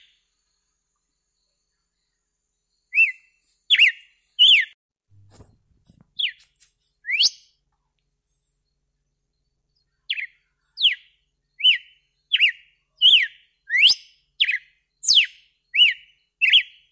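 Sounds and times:
red-cowled cardinal whistled song: 0:02.8 - 0:04.8, 0:07.0 - 0:07.6, 0:09.4 - 0:16.9.

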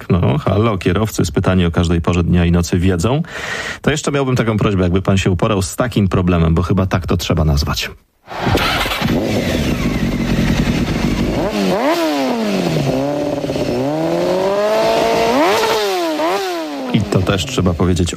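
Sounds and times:
speech: 0:00.2 - 0:08.8, 0:17.2 - 0:18.1
motorcycle engine idling and revving: 0:08.3 - 0:18.0.

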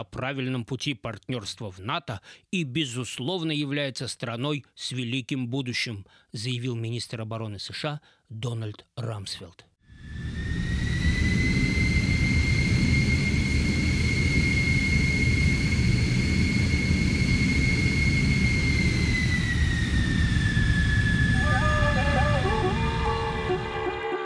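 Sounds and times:
speech: 0:00.0 - 0:10.2
An-12 transport aircraft engines roaring: 0:10.3 - 0:24.1.

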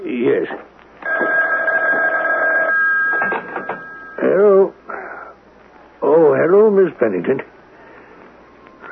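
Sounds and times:
speech: 0:00.3 - 0:00.7, 0:07.0 - 0:07.5
telephone ringing: 0:01.0 - 0:04.4.

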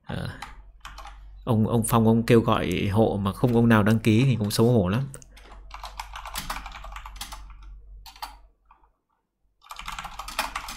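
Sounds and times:
keyboard typing: 0:00.2 - 0:01.3, 0:03.4 - 0:08.9, 0:09.6 - 0:10.7
speech: 0:01.5 - 0:05.2.

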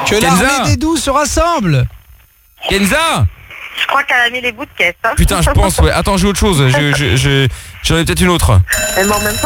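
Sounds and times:
speech: 0:00.1 - 0:01.9, 0:02.6 - 0:09.4
alarm ringtone like an old school bell: 0:08.7 - 0:09.4.

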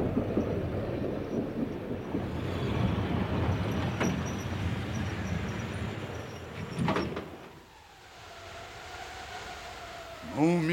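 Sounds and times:
train number 2121-B arriving at its terminal station: 0:00.1 - 0:10.7
hiss-like burst: 0:06.8 - 0:10.7.

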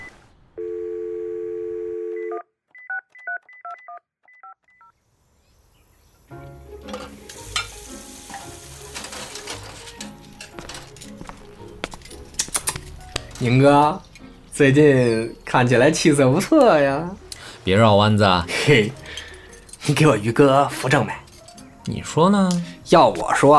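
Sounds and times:
telephone dial tone: 0:00.6 - 0:04.5
two-toned DTMF keypad beeps as a phone number is dialed: 0:02.2 - 0:04.9
crackling sizzle of food frying: 0:05.1 - 0:11.7
speech: 0:13.4 - 0:19.0, 0:19.9 - 0:21.2, 0:21.8 - 0:23.5.

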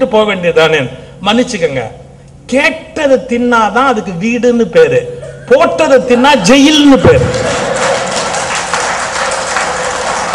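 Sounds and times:
speech: 0:00.0 - 0:07.6
audience men clapping hands: 0:07.2 - 0:10.3.

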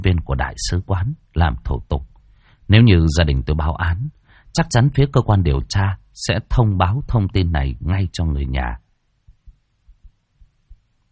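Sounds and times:
speech: 0:00.4 - 0:02.1, 0:02.7 - 0:08.8
soft hum: 0:09.2 - 0:11.1
heartbeat sound effect: 0:09.3 - 0:11.0.

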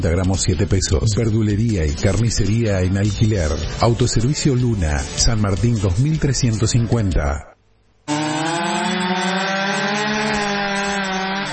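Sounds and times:
speech: 0:00.0 - 0:07.5
chainsaw running: 0:08.1 - 0:11.5.

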